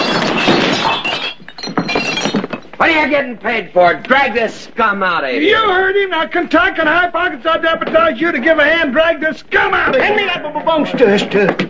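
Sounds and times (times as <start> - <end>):
gun sliding into glasses, glass breaking: 0.0 - 2.8
speech: 2.9 - 11.6.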